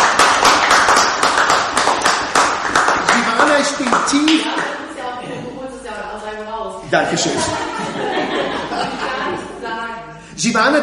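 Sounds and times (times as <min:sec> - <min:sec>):
audience applause: 0:00.0 - 0:04.7
speech: 0:03.7 - 0:04.6, 0:06.9 - 0:09.4, 0:10.4 - 0:10.8
laughter: 0:07.2 - 0:10.0.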